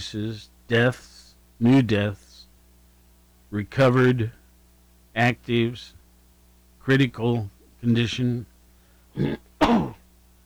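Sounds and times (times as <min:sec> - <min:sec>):
speech: 0:00.0 - 0:02.2, 0:03.5 - 0:04.4, 0:05.2 - 0:06.0, 0:06.9 - 0:08.5, 0:09.2 - 0:10.0
person coughing into an elbow: 0:09.2 - 0:10.0.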